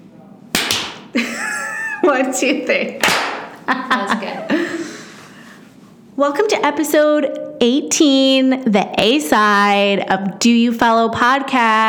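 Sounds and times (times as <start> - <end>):
hands clapping: 0.6 - 1.1, 3.0 - 3.5
laughter: 1.1 - 2.4, 3.6 - 5.4
speech: 2.2 - 4.6, 6.2 - 11.8.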